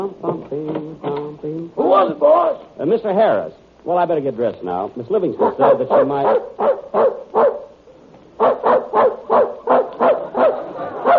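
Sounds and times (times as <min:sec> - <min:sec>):
speech: 0:02.0 - 0:07.2
dog barking in the next room: 0:05.4 - 0:07.8, 0:08.4 - 0:11.1.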